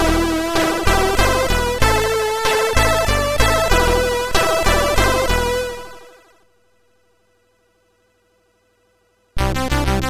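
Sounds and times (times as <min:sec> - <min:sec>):
celebration theme on SID MOS6581R4 chip: 0:00.0 - 0:06.3, 0:09.4 - 0:10.0.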